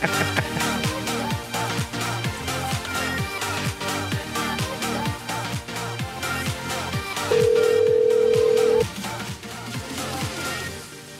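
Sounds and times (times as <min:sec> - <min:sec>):
laughter: 0:00.0 - 0:00.9
rhythmic backdrop: 0:00.0 - 0:10.8
steady electronic telephone call tone: 0:07.3 - 0:08.8.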